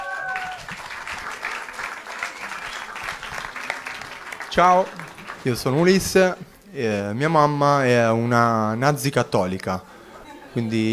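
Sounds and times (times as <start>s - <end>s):
audience applause: 0.0s - 6.3s
speech: 4.5s - 9.9s, 10.6s - 10.9s.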